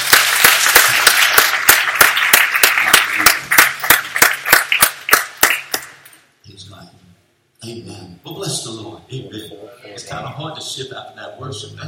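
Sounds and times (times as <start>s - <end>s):
audience clapping hands: 0.0s - 6.1s
speech: 10.2s - 11.8s.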